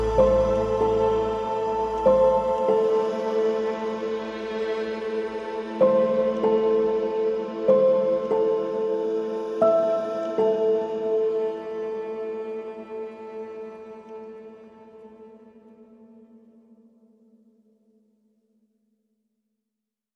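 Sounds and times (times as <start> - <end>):
dreamy bells: 0.0 - 14.0.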